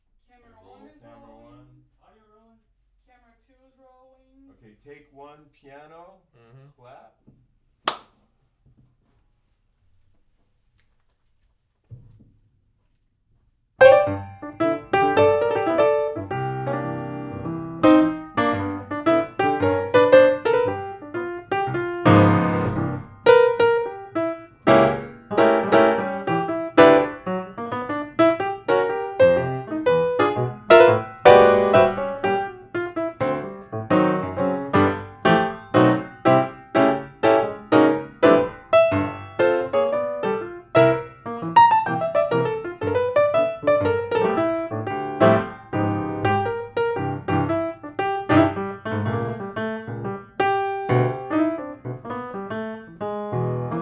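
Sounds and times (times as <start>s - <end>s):
piano: 13.8s - 53.8s.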